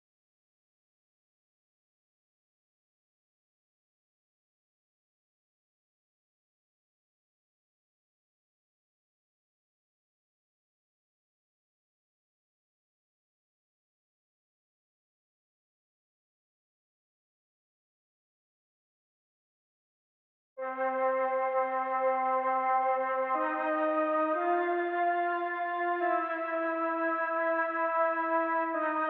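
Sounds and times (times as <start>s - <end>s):
Mellotron flute sounds: 20.6s - 29.0s.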